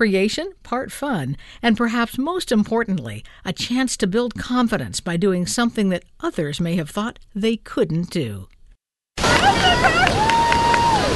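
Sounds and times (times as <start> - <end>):
speech: 0.0 - 8.6
small crowd cheering and whooping at a beach: 9.2 - 11.1
steady rush of surf: 9.2 - 11.1.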